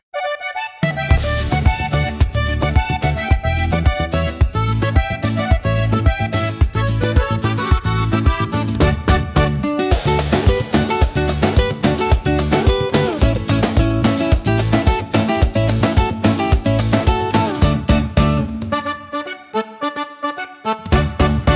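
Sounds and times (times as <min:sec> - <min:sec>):
upbeat Latin soundtrack: 0:00.0 - 0:21.5.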